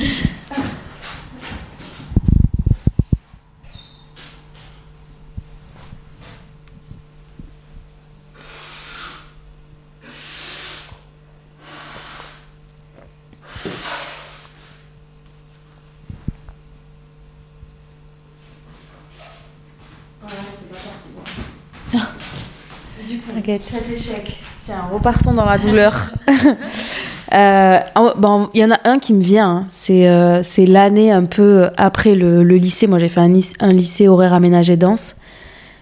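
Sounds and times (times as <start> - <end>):
low steady hum: 0.0 - 35.8
nose blowing by someone catching a cold: 8.3 - 14.9
speech: 23.5 - 35.4
laughter: 25.6 - 27.1.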